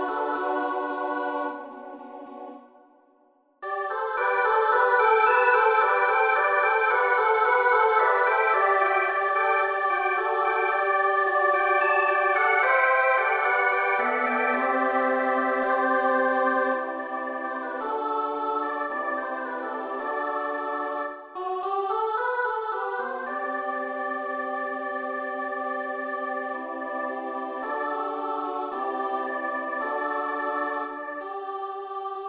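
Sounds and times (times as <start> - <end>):
SATB choir singing: 0.0 - 3.0, 3.6 - 32.2.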